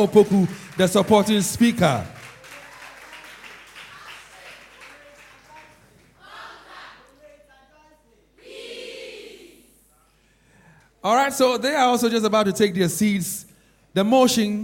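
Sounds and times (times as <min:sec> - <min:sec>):
speech: 0:00.0 - 0:02.2, 0:11.0 - 0:14.6
audience applause at a senior high school debate: 0:00.0 - 0:06.1.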